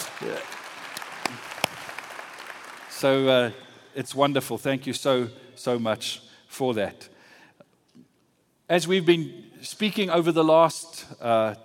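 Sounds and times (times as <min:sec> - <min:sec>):
scattered audience applause: 0:00.0 - 0:03.8
speech: 0:03.0 - 0:07.1, 0:08.7 - 0:11.6.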